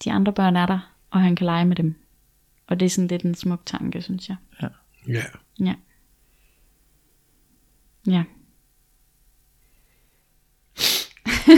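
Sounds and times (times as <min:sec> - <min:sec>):
speech: 0:00.0 - 0:02.0, 0:02.7 - 0:05.9, 0:08.0 - 0:08.4, 0:10.8 - 0:11.5
sniffle: 0:10.7 - 0:11.2.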